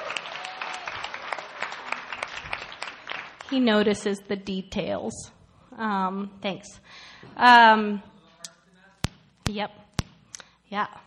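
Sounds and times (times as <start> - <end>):
crowd clapping: 0.0 - 3.6
speech: 3.5 - 8.1, 9.5 - 9.8, 10.7 - 11.0.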